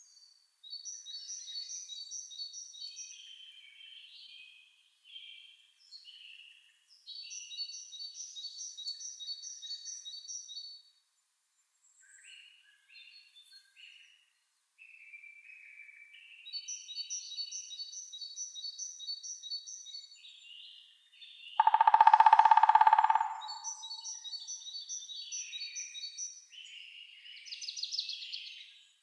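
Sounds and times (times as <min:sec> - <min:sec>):
woodpeckers Picidae: 0:21.6 - 0:24.3.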